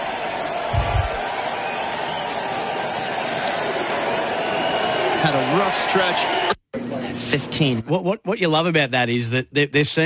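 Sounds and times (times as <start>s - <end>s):
golf crowd roaring: 0.0s - 6.6s
speech: 5.2s - 6.6s, 7.3s - 10.0s.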